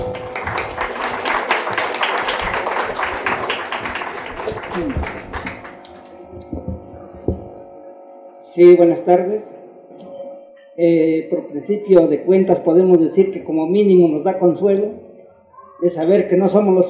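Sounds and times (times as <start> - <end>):
audience applause: 0.0 - 6.2
speech: 8.6 - 9.6, 10.8 - 15.0, 15.8 - 16.8.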